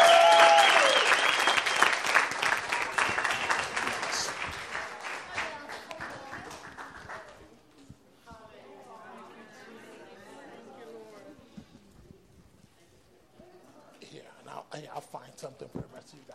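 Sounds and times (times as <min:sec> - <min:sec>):
cheers: 0:00.0 - 0:04.5
audience applause: 0:00.0 - 0:07.4.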